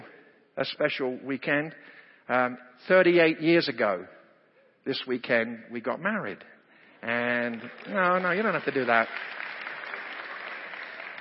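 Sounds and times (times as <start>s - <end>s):
speech: 0.6s - 4.2s, 4.8s - 9.4s
audience applause: 7.2s - 11.1s.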